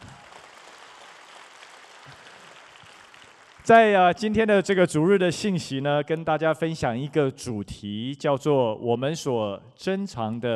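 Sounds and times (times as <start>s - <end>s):
audience applauding: 0.0s - 4.0s
speech: 3.7s - 10.5s.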